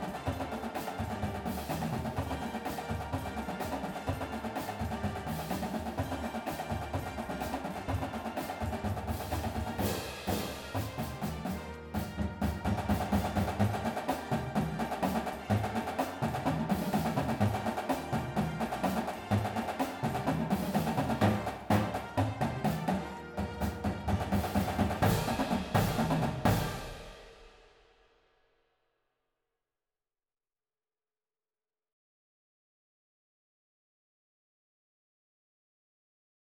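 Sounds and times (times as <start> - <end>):
full drumline: 0.0 - 27.6
music: 0.0 - 28.5.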